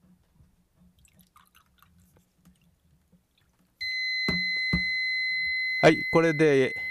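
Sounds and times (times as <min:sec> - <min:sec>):
cup water-level alarm beeping: 0:03.8 - 0:06.8
speech: 0:05.8 - 0:06.8.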